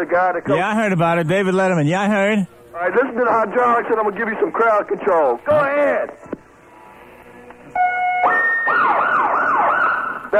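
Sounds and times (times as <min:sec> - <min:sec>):
speech: 0:00.0 - 0:06.4
police siren: 0:07.8 - 0:10.3.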